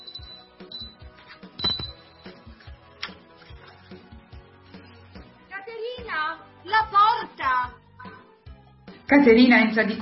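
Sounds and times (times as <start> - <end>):
doorbell ringing: 0.0 - 2.4
speech: 9.1 - 10.0.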